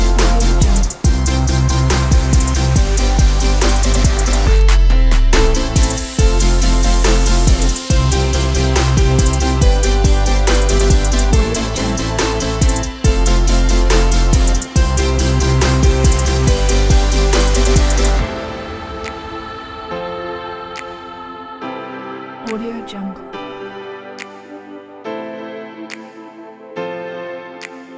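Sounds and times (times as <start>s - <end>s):
future bass music: 0.0s - 18.5s.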